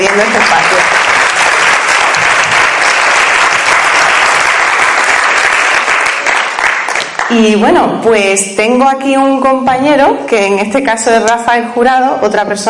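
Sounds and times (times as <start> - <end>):
audience applause: 0.0 - 7.4
speech: 0.2 - 1.0, 7.3 - 12.6.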